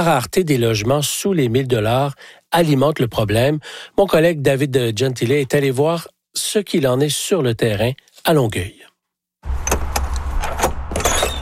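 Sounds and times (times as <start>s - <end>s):
speech: 0.0s - 9.7s
small trailer door being opened with metallic clunks and rattles: 9.5s - 11.4s.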